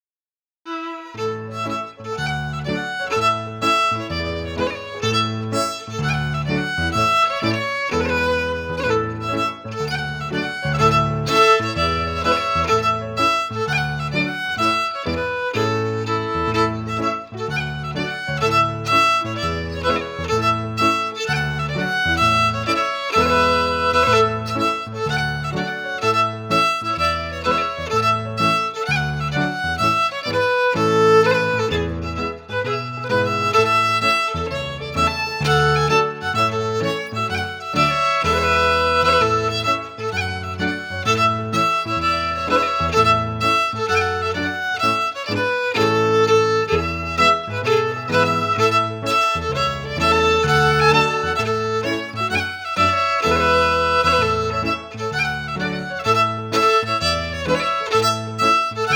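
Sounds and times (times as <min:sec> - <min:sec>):
fiddle: 0:00.6 - 0:58.9
piano: 0:00.7 - 0:58.9.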